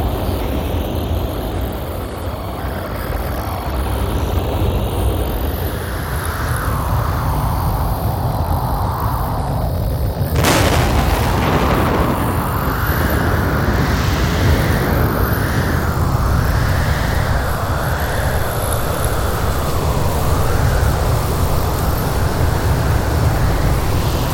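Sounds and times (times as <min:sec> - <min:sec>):
alien planet ambience: 0:00.0 - 0:24.3.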